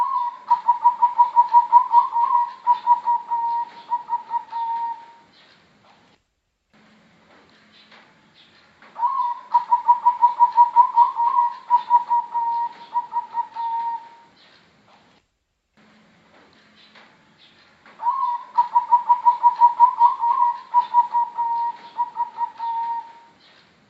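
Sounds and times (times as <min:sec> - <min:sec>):
Bangkok type zebra dove singing quick evenly pulsed coos: 0:00.0 - 0:05.3, 0:09.0 - 0:14.3, 0:18.0 - 0:23.4.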